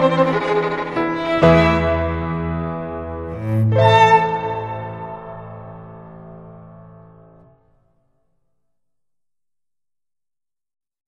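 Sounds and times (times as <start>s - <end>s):
piano: 0.0s - 8.1s.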